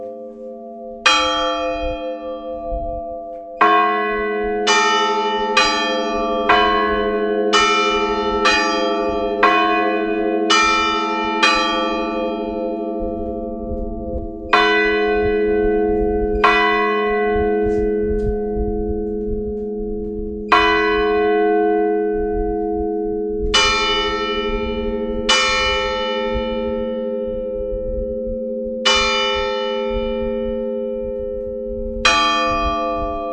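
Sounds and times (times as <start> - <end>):
church bell tower tolling a death knell: 0.0 - 33.3.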